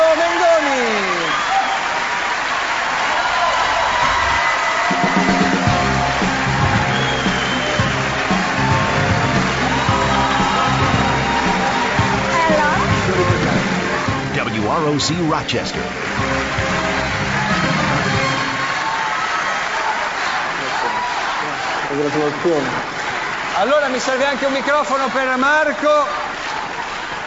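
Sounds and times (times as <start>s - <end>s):
scattered cheering: 0.0s - 27.2s
theatre audience applause: 0.0s - 27.2s
rhythmic low music: 5.0s - 18.5s
speech: 15.0s - 16.6s, 22.0s - 22.9s, 23.6s - 26.2s.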